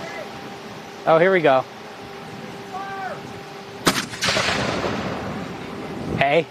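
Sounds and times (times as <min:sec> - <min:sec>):
speech: 0:01.0 - 0:01.7, 0:06.3 - 0:06.4
cannon blasts: 0:03.8 - 0:05.6.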